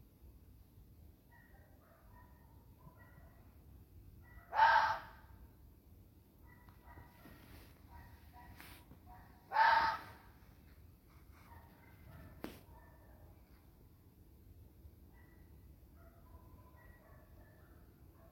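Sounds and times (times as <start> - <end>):
fox screaming: 4.5 - 5.3, 9.5 - 10.3.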